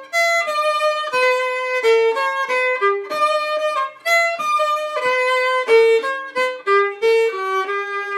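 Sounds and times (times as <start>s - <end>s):
clarinet playing a polska: 0.0s - 8.1s.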